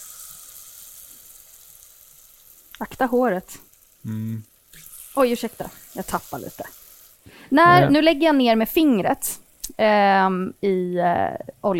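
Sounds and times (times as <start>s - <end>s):
cauliflower sizzling in hot frying oil: 0.0s - 11.7s
speech: 2.8s - 11.7s.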